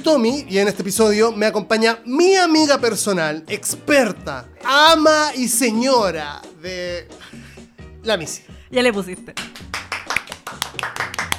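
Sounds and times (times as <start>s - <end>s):
speech: 0.0s - 7.4s, 8.0s - 9.7s
brisk self-applause hand clapping: 9.3s - 11.3s.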